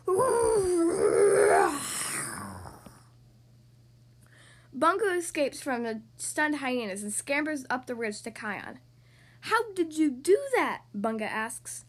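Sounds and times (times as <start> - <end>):
lion roaring: 0.9 - 3.0
speech: 4.8 - 11.8.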